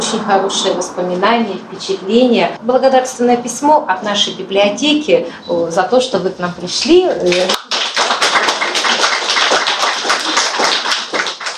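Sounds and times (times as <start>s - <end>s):
speech: 0.1s - 7.8s
audience applause: 7.6s - 11.5s.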